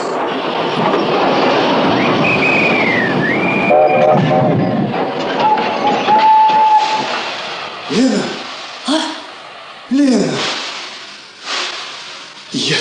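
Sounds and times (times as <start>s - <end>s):
armoured train stopping at a railway station: 0.0s - 12.7s
armoured train whistle: 2.2s - 4.6s.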